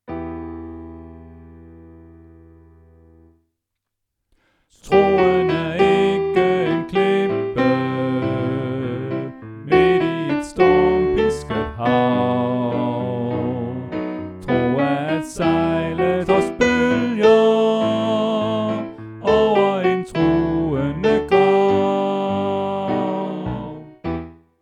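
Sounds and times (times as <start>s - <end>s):
soprano voice: 4.8s - 24.0s.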